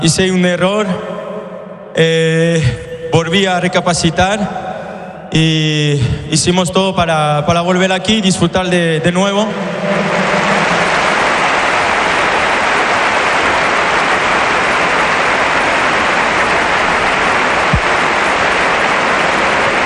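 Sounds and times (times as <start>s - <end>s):
speech: 0.0s - 1.2s, 2.0s - 4.7s, 5.3s - 10.2s
stadium crowd ovation: 9.3s - 19.8s.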